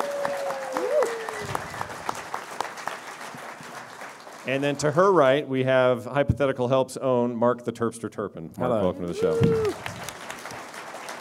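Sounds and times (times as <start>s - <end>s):
audience clapping: 0.0s - 5.2s, 9.0s - 11.1s
speech: 4.5s - 10.0s.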